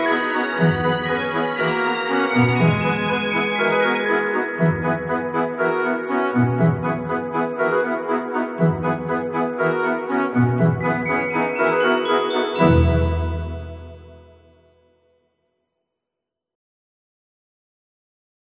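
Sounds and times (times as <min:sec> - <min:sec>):
orchestra: 0:00.0 - 0:14.5.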